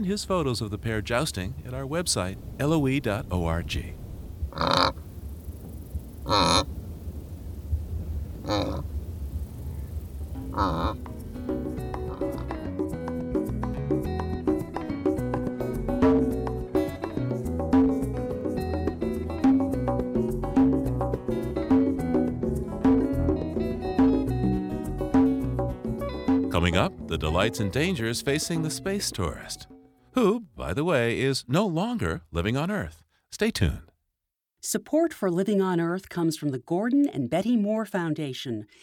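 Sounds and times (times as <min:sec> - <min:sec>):
speech: 0:00.0 - 0:05.0, 0:06.3 - 0:06.7, 0:08.5 - 0:08.8, 0:10.6 - 0:11.0, 0:27.1 - 0:33.9, 0:34.6 - 0:38.8
pair of wildebeest grazing, cropping and chewing: 0:08.4 - 0:09.0, 0:09.6 - 0:12.7
music: 0:10.3 - 0:30.3.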